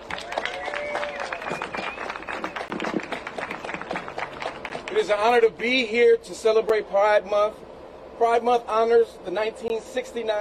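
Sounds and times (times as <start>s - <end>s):
audience applause: 0.0s - 5.0s
speech: 5.0s - 7.6s, 8.2s - 10.3s.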